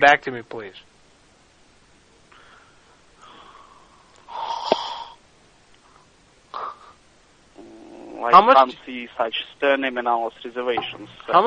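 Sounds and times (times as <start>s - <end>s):
speech: 0.0s - 0.9s, 8.2s - 11.4s
heavy wheezing breathing into a telephone receiver: 2.3s - 5.2s.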